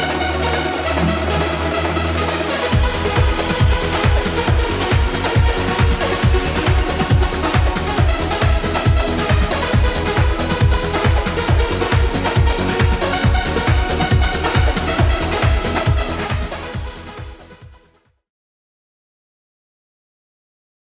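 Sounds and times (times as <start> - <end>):
90s ReDrum beat at 137 bpm: 0.8 - 17.5.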